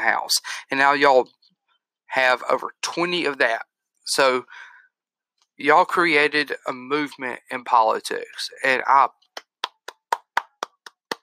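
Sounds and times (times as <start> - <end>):
speech: 0.0 - 1.4, 2.1 - 4.7, 5.6 - 9.2
hands clapping: 9.3 - 11.2.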